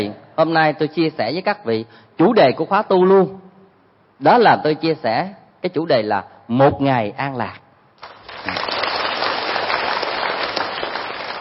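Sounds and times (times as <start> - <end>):
speech: 0.0 - 3.4, 4.2 - 7.6
audience clapping during a talk at a meditation retreat: 8.0 - 11.3.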